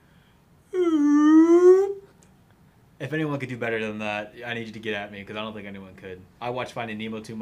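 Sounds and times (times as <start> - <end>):
person's voice imitating a whale call: 0.7 - 2.1
speech: 3.0 - 7.3.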